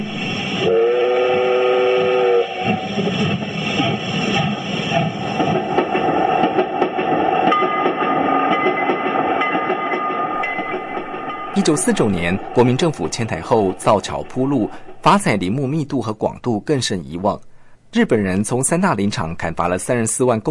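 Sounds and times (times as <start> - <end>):
forest railway train running: 0.0 - 16.2
forest railway train horn blast: 0.6 - 2.9
speech: 11.7 - 20.4.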